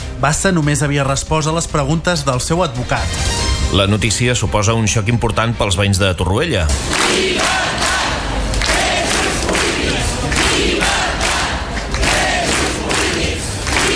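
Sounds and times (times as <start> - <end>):
speech: 0.2 - 7.8
large crowd chanting protest slogans: 6.8 - 13.9.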